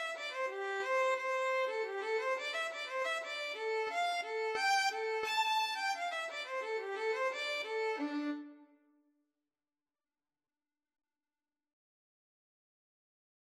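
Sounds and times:
cello: 0:00.0 - 0:08.7
violin: 0:00.0 - 0:08.8.

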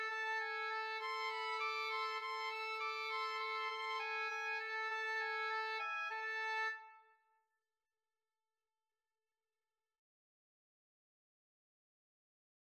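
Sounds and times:
oboe duet: 0:00.0 - 0:07.0.

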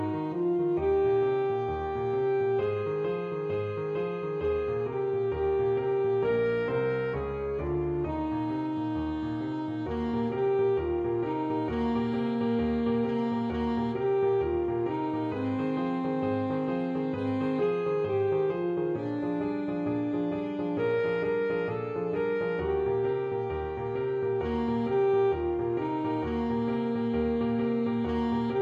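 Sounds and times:
boogie played on alto saxophone: 0:00.0 - 0:28.6.

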